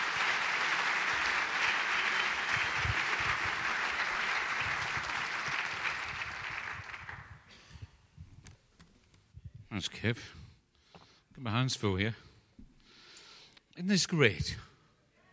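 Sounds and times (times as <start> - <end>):
audience applause: 0.0 - 7.4
speech: 9.8 - 10.4, 11.4 - 12.2, 13.9 - 14.6.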